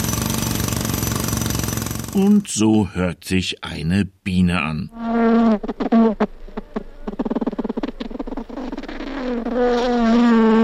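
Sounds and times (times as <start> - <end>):
jackhammer: 0.0 - 2.4
speech: 2.1 - 6.4, 9.3 - 10.5.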